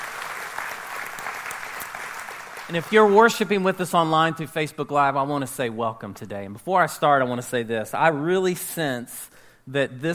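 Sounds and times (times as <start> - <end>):
audience round of applause: 0.0 - 3.2
speech: 2.7 - 10.1.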